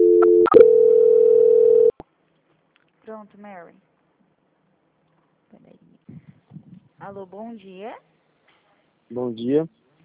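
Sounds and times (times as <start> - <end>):
telephone tones during a call transfer: 0.0 - 1.9
speech: 3.2 - 3.9, 7.0 - 8.1, 9.1 - 9.8.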